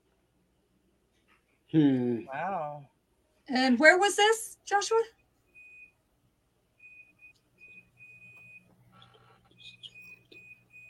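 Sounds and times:
speech: 1.7 - 2.9, 3.5 - 5.2
clothes dryer beeping: 5.6 - 6.0, 6.8 - 10.8.

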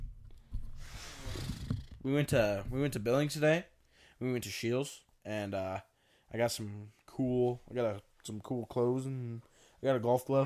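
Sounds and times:
person blowing nose: 0.8 - 1.8
speech: 2.0 - 10.4.

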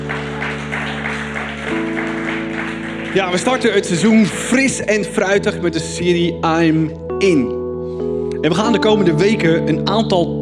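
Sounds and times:
large crowd applause: 0.0 - 4.7
sustained keyboard or music drone: 0.0 - 10.4
speech: 3.1 - 10.3.

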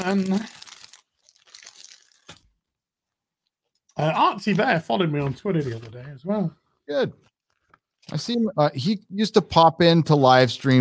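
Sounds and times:
bags being opened, packaging tearing and crinkling: 0.0 - 2.6
speech: 0.1 - 0.6, 4.0 - 7.3, 8.0 - 10.8.

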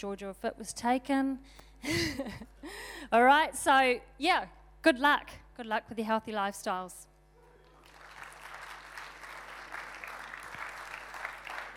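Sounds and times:
speech: 0.0 - 7.1
audience applause: 7.6 - 11.7.

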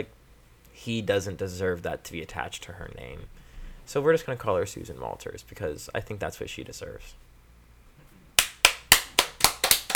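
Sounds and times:
speech: 0.8 - 7.3
slow hand clapping: 8.4 - 9.9.

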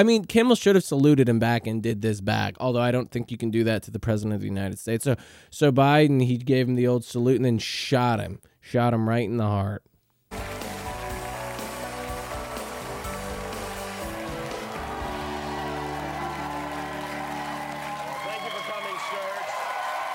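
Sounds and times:
speech: 0.0 - 10.5
studio audience applause: 10.3 - 20.1.

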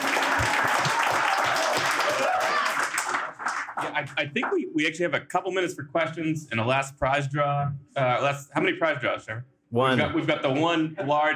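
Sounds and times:
crowd applauding: 0.0 - 4.6
speech: 4.0 - 11.3.

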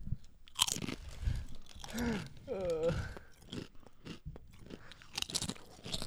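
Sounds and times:
chips crunched and chewed: 0.5 - 6.0.

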